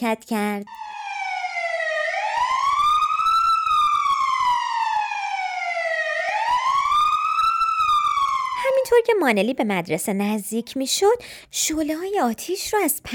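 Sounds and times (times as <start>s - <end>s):
speech: 0.0s - 0.9s, 9.0s - 13.1s
fire engine siren: 0.7s - 8.8s.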